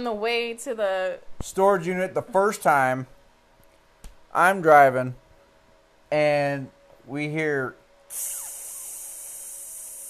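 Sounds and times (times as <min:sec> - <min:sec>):
speech: 0:00.0 - 0:03.2, 0:04.3 - 0:05.2, 0:06.1 - 0:08.4
faint squeal: 0:08.1 - 0:10.0
hiss of punctured pressurized cans spraying: 0:08.1 - 0:10.0.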